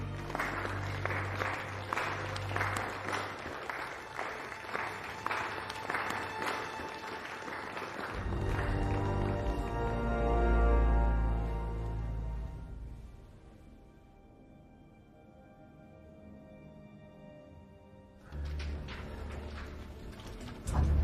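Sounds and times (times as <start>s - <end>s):
crowd applauding: 0.0s - 12.0s, 18.3s - 21.0s.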